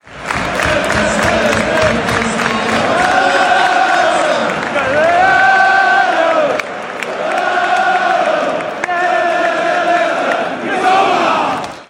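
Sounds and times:
crowd chanting: 0:00.1 - 0:11.8.

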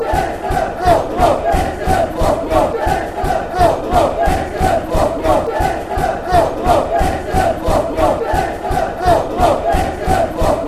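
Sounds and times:
football crowd chanting: 0:00.0 - 0:10.6.

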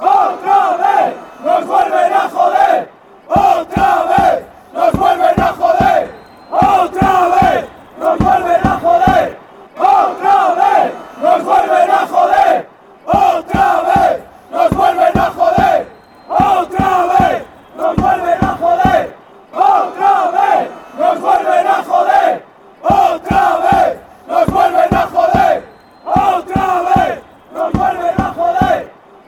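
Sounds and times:
fans chanting: 0:00.0 - 0:29.2.

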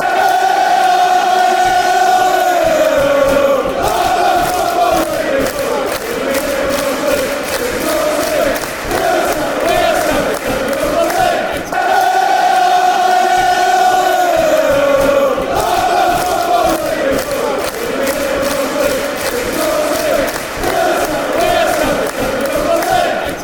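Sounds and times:
fans chanting: 0:00.0 - 0:23.4.

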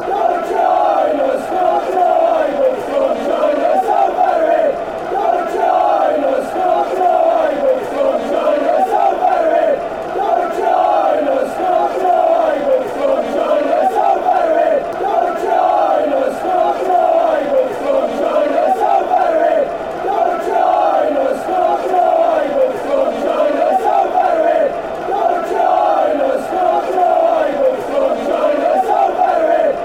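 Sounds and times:
football crowd chanting: 0:00.0 - 0:29.8.

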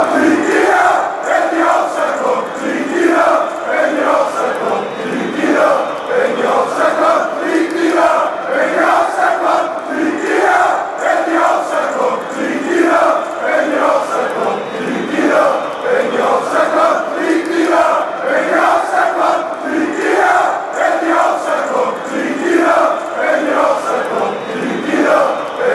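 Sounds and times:
football fans chanting: 0:00.0 - 0:25.7.

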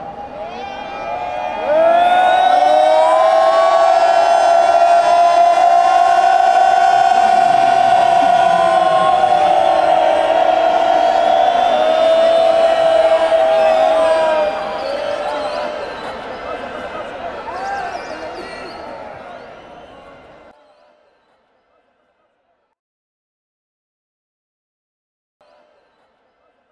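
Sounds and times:
fans chanting: 0:01.5 - 0:20.5.

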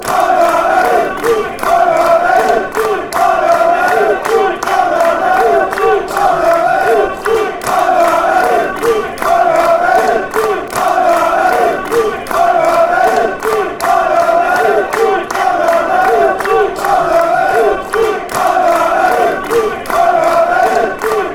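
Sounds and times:
football crowd chanting songs: 0:00.0 - 0:21.3.

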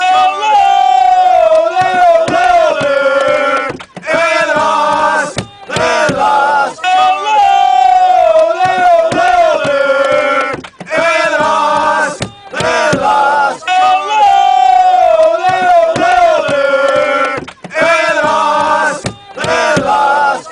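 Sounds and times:
chanting: 0:00.0 - 0:20.4.

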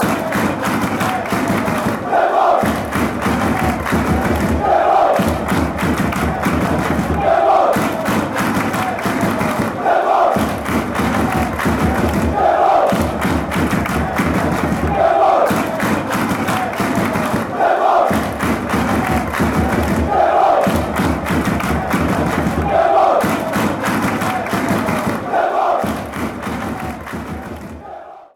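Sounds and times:
football fans chanting: 0:00.0 - 0:28.3.

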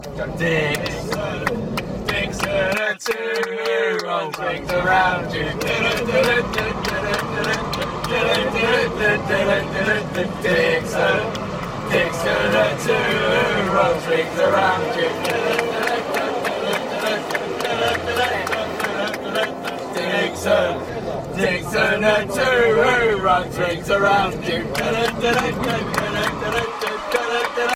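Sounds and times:
football fans chanting: 0:00.2 - 0:27.7.

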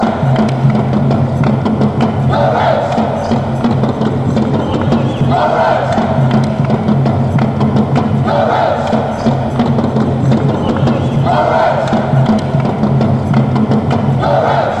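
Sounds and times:
fans chanting: 0:00.0 - 0:14.7.

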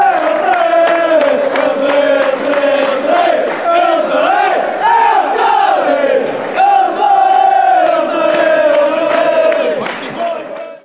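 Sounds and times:
football crowd chanting: 0:00.0 - 0:10.8.

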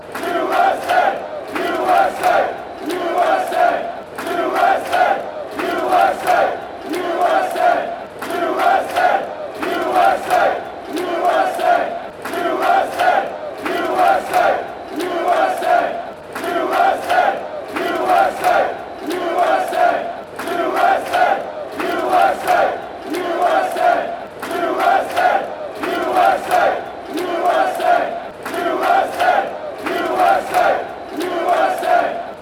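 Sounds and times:
USA claps: 0:00.0 - 0:32.3.

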